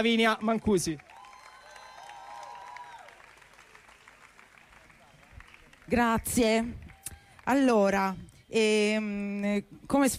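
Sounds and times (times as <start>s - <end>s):
speech: 0.0s - 1.1s, 5.9s - 6.8s, 7.5s - 10.1s
crowd clapping: 0.0s - 8.2s
whooping cheers: 1.0s - 3.8s.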